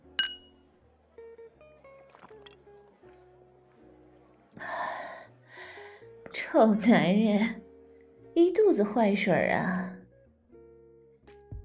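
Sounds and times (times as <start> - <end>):
soft gentle melodic music: 0.0 - 11.6
glasses clinking in a toast: 0.1 - 0.6
speech: 6.5 - 7.6, 8.7 - 9.8.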